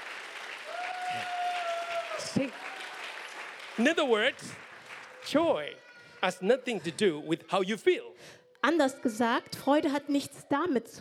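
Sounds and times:
audience clapping for the Lord: 0.0 - 5.7
speech: 2.3 - 2.8, 3.8 - 4.6, 5.2 - 11.0.

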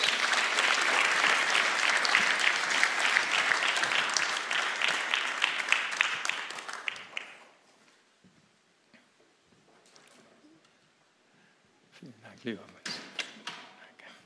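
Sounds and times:
audience applause: 0.0 - 7.6.

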